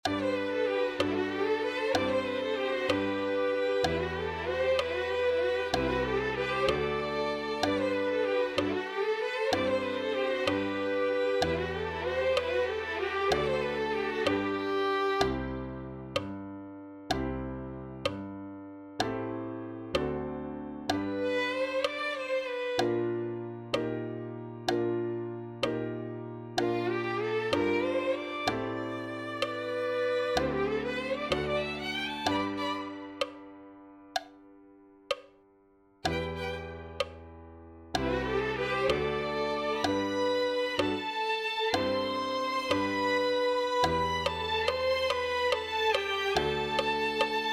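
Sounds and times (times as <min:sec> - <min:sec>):
violin: 0:00.0 - 0:18.3, 0:19.0 - 0:34.3, 0:36.0 - 0:47.5.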